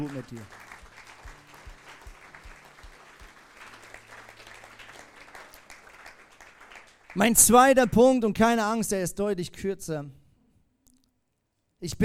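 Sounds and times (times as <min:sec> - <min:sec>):
speech: 0:00.0 - 0:00.7, 0:07.1 - 0:10.2, 0:11.8 - 0:12.0
audience applause: 0:00.0 - 0:07.8.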